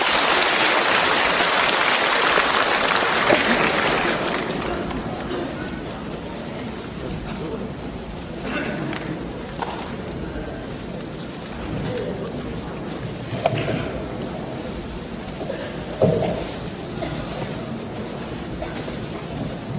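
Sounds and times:
audience applause: 0:00.0 - 0:06.3
faint voices: 0:00.6 - 0:19.7.

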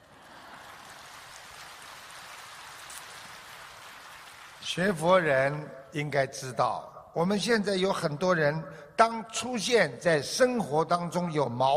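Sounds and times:
audience applause: 0:00.0 - 0:04.7
speech: 0:04.6 - 0:11.7.

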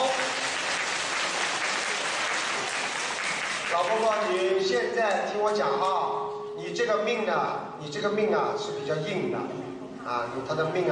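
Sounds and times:
audience applause: 0:00.0 - 0:04.4
speech: 0:03.8 - 0:10.9.

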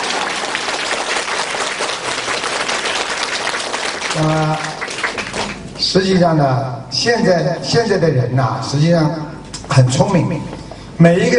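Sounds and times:
audience applause: 0:00.0 - 0:05.8
speech: 0:04.2 - 0:04.7, 0:05.8 - 0:09.2, 0:09.8 - 0:11.3.

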